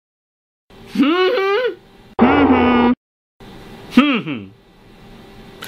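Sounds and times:
person humming: 0:00.9 - 0:03.0, 0:03.9 - 0:04.6.

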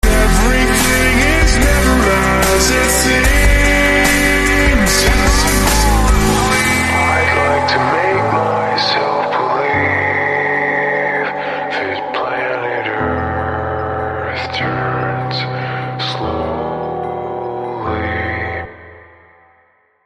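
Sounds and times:
slowed sad music: 0:00.0 - 0:19.6.

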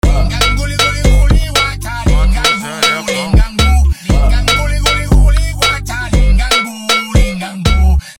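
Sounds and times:
Brazilian phonk music: 0:00.0 - 0:08.1.

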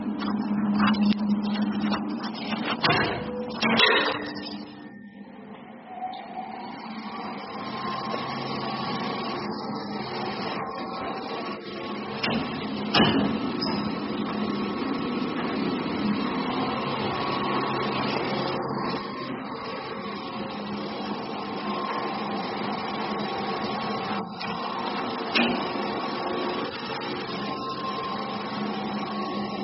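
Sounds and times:
elevator machinery in the machine room: 0:00.0 - 0:29.6.

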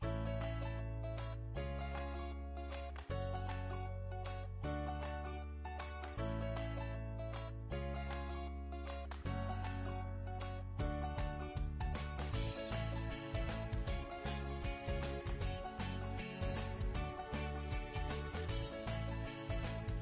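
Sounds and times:
advertisement background music: 0:00.0 - 0:20.0.

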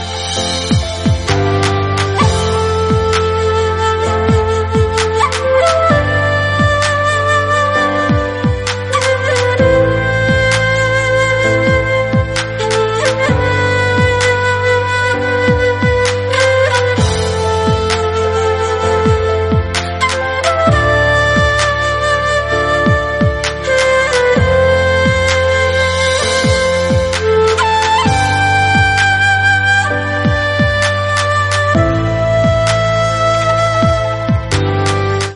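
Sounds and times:
flute: 0:00.0 - 0:35.3.

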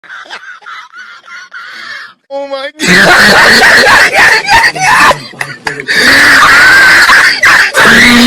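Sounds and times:
person laughing loudly: 0:00.0 - 0:02.1, 0:02.8 - 0:08.1.

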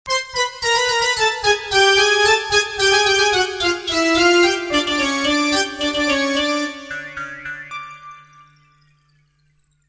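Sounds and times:
circus tune: 0:00.1 - 0:09.1.

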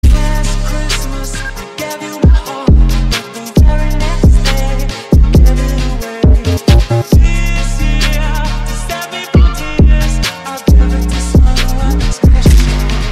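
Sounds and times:
drill music remix: 0:00.0 - 0:13.1.

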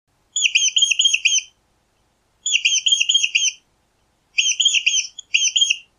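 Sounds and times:
short mouse squeak: 0:00.4 - 0:01.5, 0:02.5 - 0:03.6, 0:04.4 - 0:05.9.

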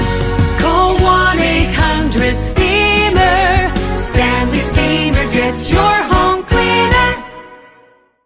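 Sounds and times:
jingle: 0:00.6 - 0:08.0.

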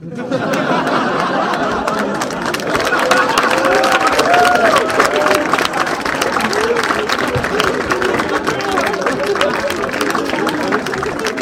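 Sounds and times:
people laughing: 0:00.0 - 0:11.4
applause: 0:00.3 - 0:11.4.

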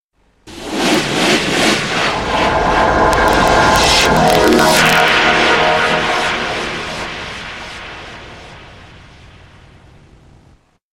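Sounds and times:
scary sound: 0:00.5 - 0:10.0.

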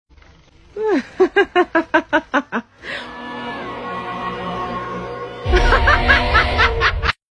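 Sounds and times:
evil laugh: 0:00.9 - 0:02.7, 0:05.4 - 0:07.2.

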